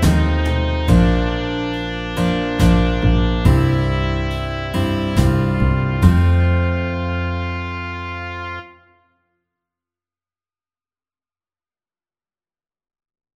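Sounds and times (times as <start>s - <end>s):
slow ballad: 0.0s - 8.8s.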